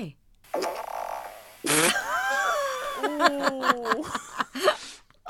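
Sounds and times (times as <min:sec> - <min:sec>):
fart: 0:00.5 - 0:02.0
laughter: 0:01.7 - 0:05.0.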